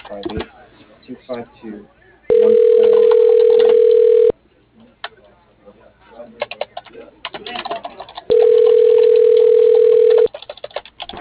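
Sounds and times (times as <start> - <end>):
telephone ringback tone as a call goes through: 2.3 - 4.3, 8.3 - 10.3.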